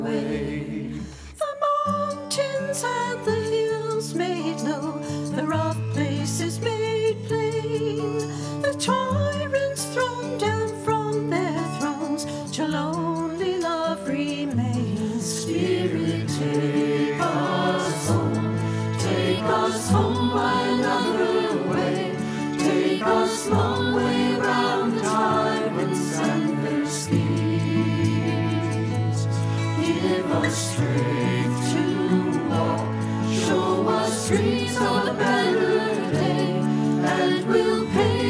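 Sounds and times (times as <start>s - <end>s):
person singing a verse: 0.0s - 38.2s
guitar intro: 10.9s - 38.2s.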